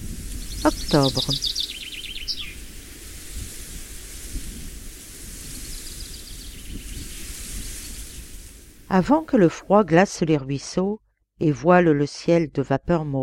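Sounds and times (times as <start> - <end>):
birds singing: 0.3 - 2.9, 5.6 - 8.2
speech: 0.6 - 1.6, 8.9 - 13.2.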